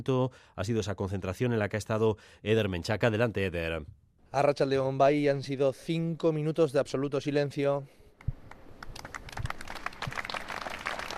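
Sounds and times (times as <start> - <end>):
speech: 0.0 - 8.4
crowd applauding at a memorial gathering: 8.5 - 11.1.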